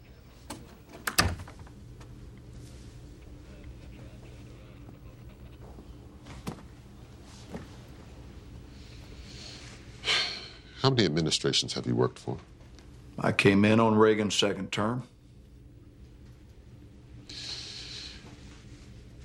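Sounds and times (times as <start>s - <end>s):
door closing: 0.4s - 1.8s
speech: 10.9s - 12.6s, 13.2s - 15.1s.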